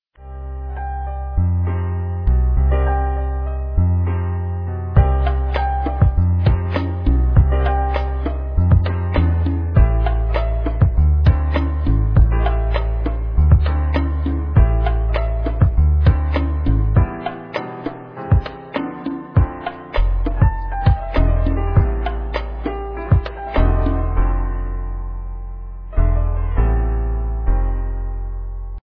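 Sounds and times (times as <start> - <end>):
music: 0.2 - 28.8.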